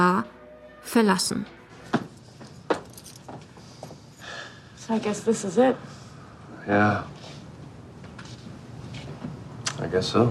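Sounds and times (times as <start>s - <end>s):
speech: 0.0s - 2.0s, 4.9s - 6.0s, 6.6s - 7.2s, 9.8s - 10.2s
faint noise: 0.9s - 10.2s
keys laid on a table in the closing scene of a TV series: 2.4s - 3.7s.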